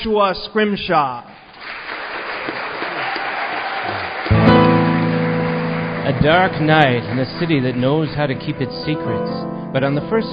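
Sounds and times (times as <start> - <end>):
speech: 0.0 - 1.9, 6.1 - 10.3
audience clapping: 1.5 - 8.9.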